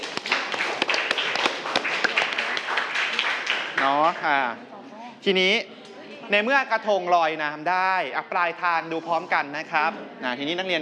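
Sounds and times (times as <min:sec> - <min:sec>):
students clapping hands: 0:00.0 - 0:04.4
speech: 0:03.8 - 0:05.7, 0:06.3 - 0:10.8.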